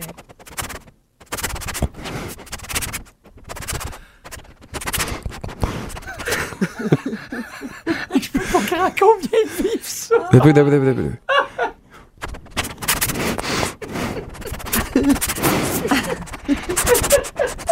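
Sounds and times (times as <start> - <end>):
person imitating a dog sniffing under a door: 1.4 - 6.4, 12.6 - 17.6
laughter: 6.0 - 11.8, 14.1 - 17.6
speech: 8.8 - 11.3.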